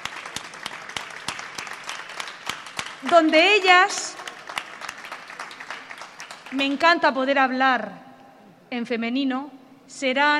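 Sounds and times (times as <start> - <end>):
audience clapping for the IKEA staff: 0.0 - 7.0
speech: 3.0 - 4.2, 6.5 - 8.0, 8.7 - 10.3.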